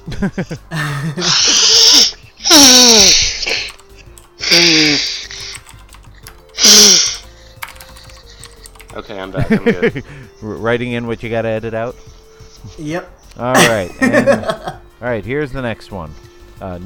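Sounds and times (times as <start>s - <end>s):
speech: 0.2s - 2.0s, 2.6s - 3.7s, 9.1s - 16.8s
nose blowing: 1.2s - 3.6s, 6.6s - 7.2s
laughter: 9.2s - 10.1s, 13.6s - 14.8s.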